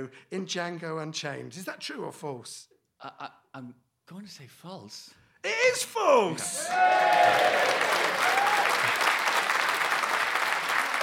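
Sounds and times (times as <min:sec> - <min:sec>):
speech: 0:00.0 - 0:09.2
audience applause: 0:06.4 - 0:11.0.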